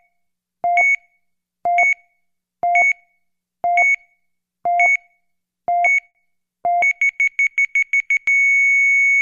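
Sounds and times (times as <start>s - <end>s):
cardiac monitor flatline: 0.7s - 1.0s, 1.7s - 2.0s, 2.7s - 3.0s, 3.7s - 4.1s, 4.7s - 5.1s, 5.7s - 6.1s, 6.7s - 9.1s.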